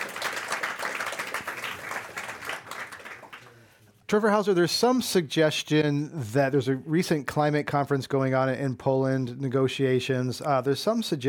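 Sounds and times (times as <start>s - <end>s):
round of applause: 0.0s - 3.8s
speech: 4.1s - 11.2s.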